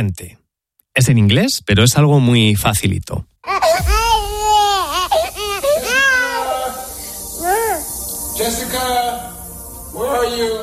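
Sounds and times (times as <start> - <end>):
speech: 0.0 - 0.4, 1.0 - 4.0, 8.4 - 10.6
baby crying in a tantrum: 3.4 - 8.0.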